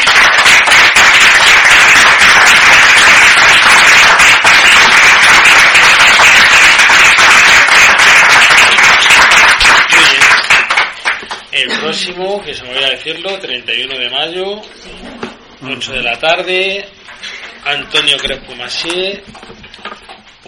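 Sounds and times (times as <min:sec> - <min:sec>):
audience applause: 0:00.0 - 0:11.5
speech: 0:13.0 - 0:17.0, 0:17.7 - 0:19.7.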